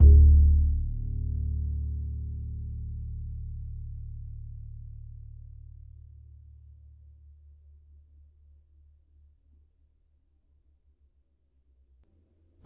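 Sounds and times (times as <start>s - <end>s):
upright acoustic bass in E: 0.0s - 5.6s.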